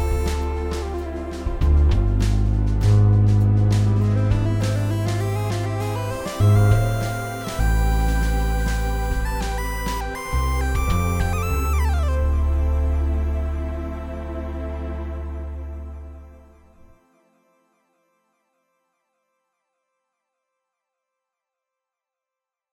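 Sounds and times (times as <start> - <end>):
jazz fusion music: 0.0 - 15.4.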